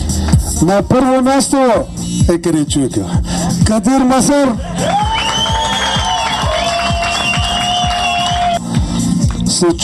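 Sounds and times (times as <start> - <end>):
speech: 0.6 - 5.1, 9.6 - 9.8
crowd applause and cheering: 4.6 - 9.0.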